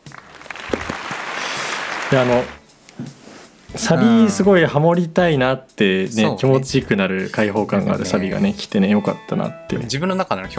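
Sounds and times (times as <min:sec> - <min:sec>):
crowd clapping applause sound effect: 0:00.0 - 0:02.6
speech: 0:02.1 - 0:03.2, 0:03.8 - 0:10.5.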